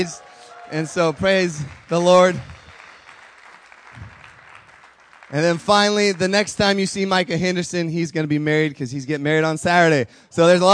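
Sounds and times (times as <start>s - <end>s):
speech: 0.0s - 2.5s, 5.3s - 10.7s
audience clapping: 0.0s - 7.5s.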